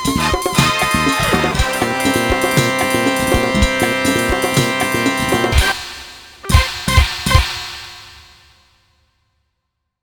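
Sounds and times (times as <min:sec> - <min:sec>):
MIDI blues music: 0:00.0 - 0:05.8.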